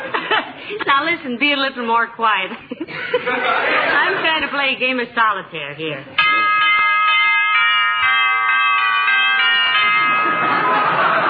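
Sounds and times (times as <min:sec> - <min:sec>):
laughter: 0:00.0 - 0:01.0, 0:02.5 - 0:04.6, 0:09.8 - 0:11.2
speech: 0:01.0 - 0:06.3
electric doorbell ringing: 0:06.2 - 0:11.0.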